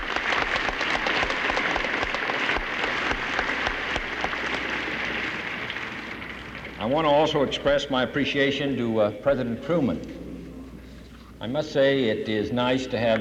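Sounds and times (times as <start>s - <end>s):
audience applause: 0.0s - 6.7s
speech: 6.9s - 10.2s, 11.4s - 13.1s.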